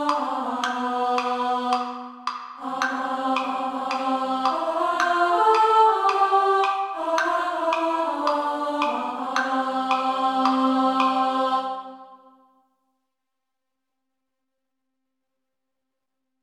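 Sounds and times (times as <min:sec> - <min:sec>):
women singing soprano: 0:00.0 - 0:12.4.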